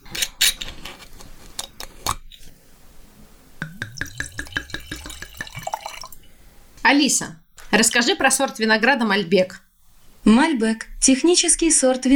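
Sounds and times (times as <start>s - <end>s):
wine pouring into a glass: 3.6s - 6.3s
speech: 6.9s - 9.6s, 10.2s - 12.1s.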